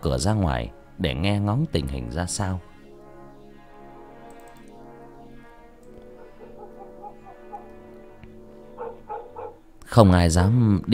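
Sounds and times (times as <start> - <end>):
speech: 0.0 - 2.7, 10.0 - 10.9
dogs barking loudly in the neighborhood: 6.1 - 9.8.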